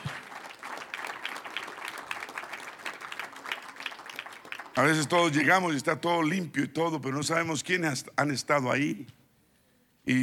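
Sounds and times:
audience applause: 0.0s - 5.5s
speech: 4.8s - 9.2s.

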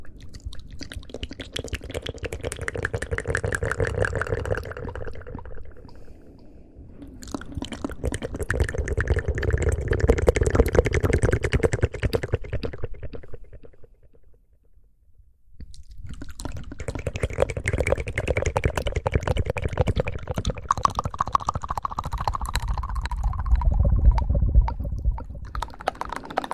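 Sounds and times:
wet mouth clicks and smacks: 0.0s - 13.8s, 15.6s - 26.5s
low rumble: 22.4s - 26.2s.

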